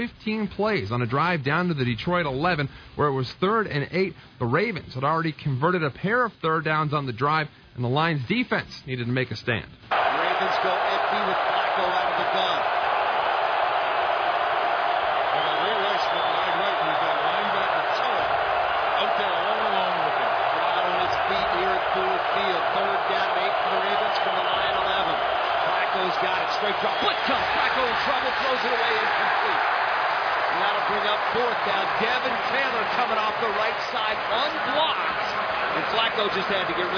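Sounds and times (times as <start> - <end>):
speech: 0.0 - 12.8, 30.9 - 36.9
loud stadium crowd cheering: 9.9 - 36.9.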